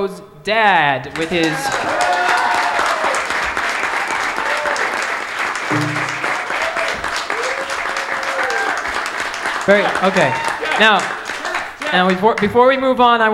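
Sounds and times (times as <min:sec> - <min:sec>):
speech: 0:00.0 - 0:02.2, 0:09.6 - 0:11.2, 0:11.9 - 0:13.3
audience applause: 0:01.2 - 0:12.2.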